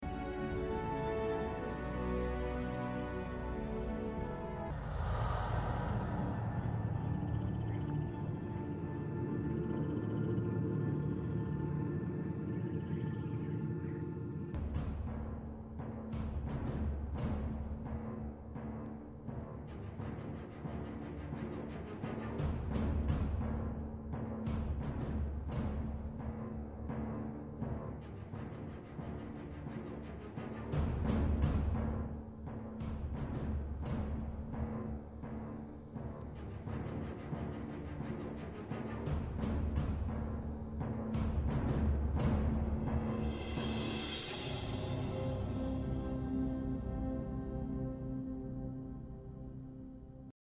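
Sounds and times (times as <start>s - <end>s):
music: 0.0s - 50.4s.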